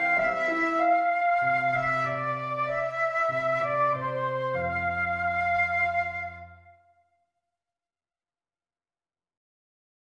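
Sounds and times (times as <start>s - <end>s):
flute vignette: 0.0s - 7.0s.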